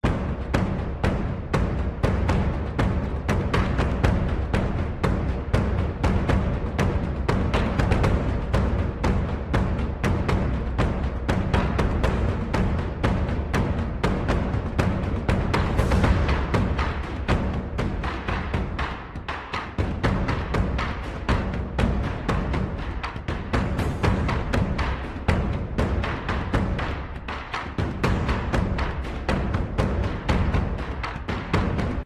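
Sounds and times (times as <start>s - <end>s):
battle music: 0.0s - 32.0s.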